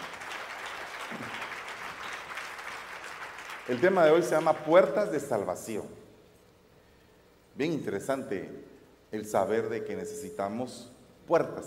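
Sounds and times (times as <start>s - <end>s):
audience applause: 0.0s - 4.8s
speech: 3.7s - 6.0s, 7.6s - 11.6s.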